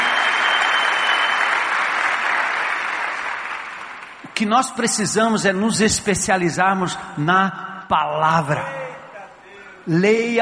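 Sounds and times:
audience applauding: 0:00.0 - 0:04.2
speech: 0:04.4 - 0:08.8, 0:09.8 - 0:10.4.

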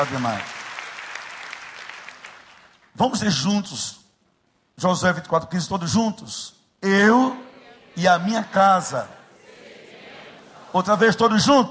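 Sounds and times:
speech: 0:00.0 - 0:00.6, 0:03.0 - 0:04.0, 0:04.8 - 0:07.4, 0:08.0 - 0:09.2, 0:10.7 - 0:11.6
audience applause: 0:00.0 - 0:02.8.

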